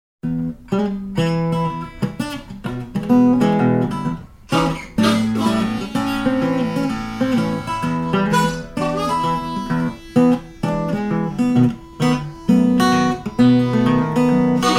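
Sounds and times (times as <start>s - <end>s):
Delta blues music: 0.2s - 14.7s.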